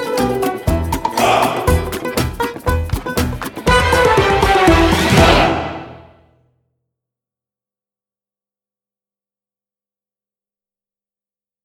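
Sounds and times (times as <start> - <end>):
theme music: 0.0 - 6.2.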